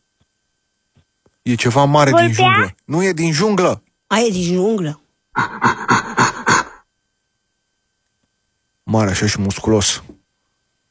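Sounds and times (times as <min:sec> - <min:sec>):
speech: 0:01.5 - 0:05.8, 0:08.9 - 0:10.2
gorilla vocalizing: 0:05.4 - 0:06.8.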